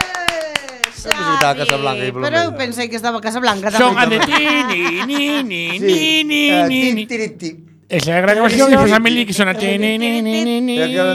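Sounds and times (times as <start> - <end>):
steady hand claps: 0.0 - 1.9
speech: 1.1 - 11.1
laughter: 3.6 - 7.2.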